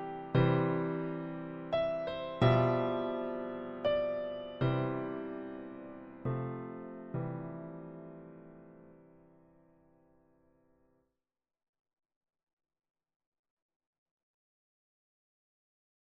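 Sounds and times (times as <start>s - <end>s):
MIDI piano: 0.0s - 10.2s.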